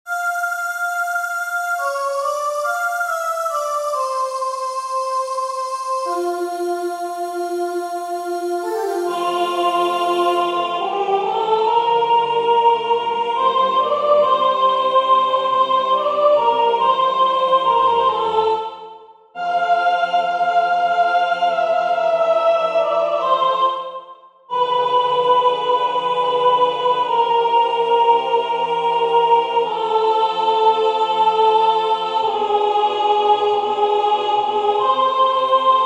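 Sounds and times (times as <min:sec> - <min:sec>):
soprano singing: 0:00.1 - 0:35.8.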